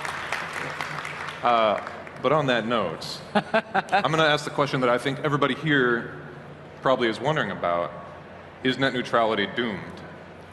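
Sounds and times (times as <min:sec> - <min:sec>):
audience applause: 0:00.0 - 0:02.2
speech: 0:01.4 - 0:06.2, 0:06.8 - 0:08.0, 0:08.6 - 0:10.0
laughter: 0:03.1 - 0:04.5.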